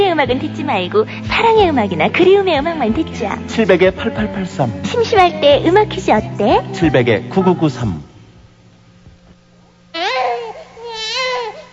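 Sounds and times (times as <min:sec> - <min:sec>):
faint low hum: 0:00.0 - 0:11.7
speech: 0:00.2 - 0:08.1
infant crying: 0:09.9 - 0:11.7.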